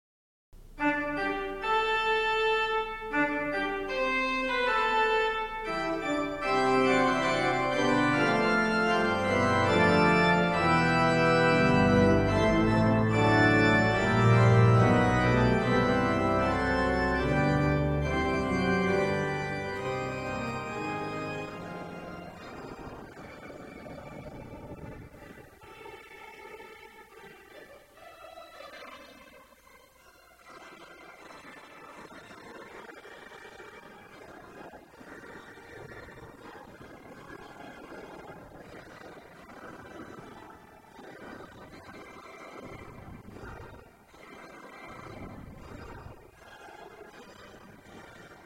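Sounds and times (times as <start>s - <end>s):
organ fanfare: 0.8s - 25.0s.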